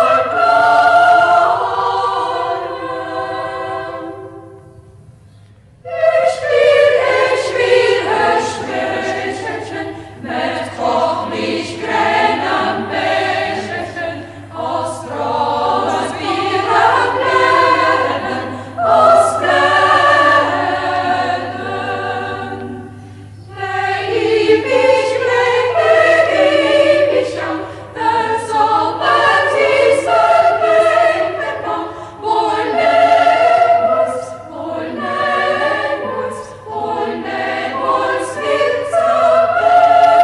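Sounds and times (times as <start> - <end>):
chamber choir singing: 0.0 - 5.1, 5.8 - 40.2.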